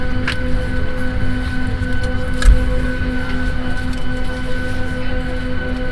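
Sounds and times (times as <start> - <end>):
airplane prestart: 0.2 - 5.8.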